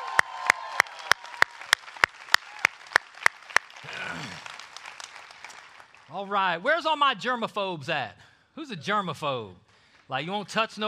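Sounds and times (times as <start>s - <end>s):
audience clapping and cheering: 0.0s - 6.8s
speech: 3.8s - 4.5s, 6.1s - 10.8s.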